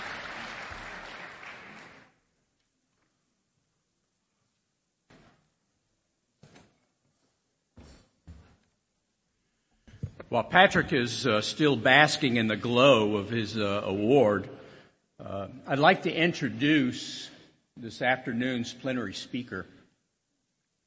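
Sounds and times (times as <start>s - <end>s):
audience applause: 0.0s - 2.2s
speech: 10.3s - 14.6s, 15.3s - 19.8s.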